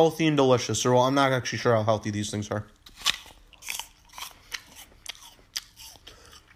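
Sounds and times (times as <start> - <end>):
speech: 0.0 - 3.1
biting and chewing a Fuji apple: 2.6 - 6.5.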